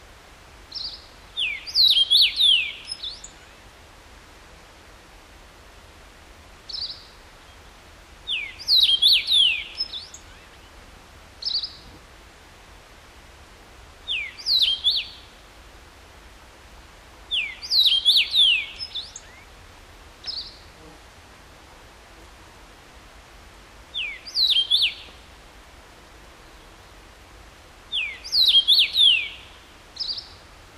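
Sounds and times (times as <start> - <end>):
Carpodacus erythrinus: 0.7 - 3.7, 6.7 - 7.6, 8.2 - 10.8, 11.4 - 12.0, 14.0 - 15.4, 17.3 - 19.5, 20.2 - 20.8, 23.9 - 25.2, 27.9 - 30.5.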